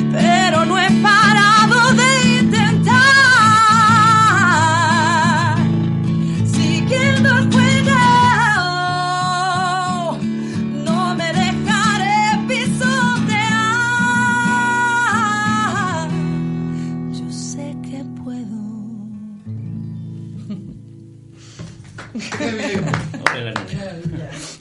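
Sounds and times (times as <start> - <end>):
sung melody with sustained instrumental notes: 0.0 - 23.2
laughter: 20.4 - 20.8, 22.0 - 24.5
scattered audience applause: 21.8 - 24.0.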